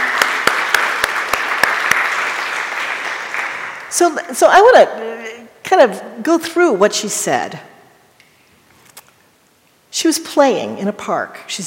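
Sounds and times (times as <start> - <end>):
audience applause: 0.0 - 3.9
speech: 4.0 - 7.7, 10.0 - 11.6.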